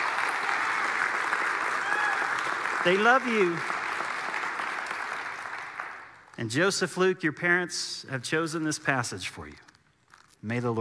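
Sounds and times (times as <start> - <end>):
audience applause: 0.0 - 6.4
speech: 2.8 - 3.7, 6.4 - 9.6, 10.4 - 10.7.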